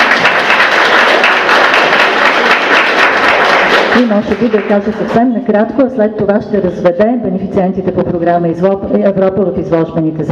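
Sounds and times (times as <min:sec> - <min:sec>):
crowd applauding: 0:00.0 - 0:05.2
speech: 0:04.0 - 0:10.3.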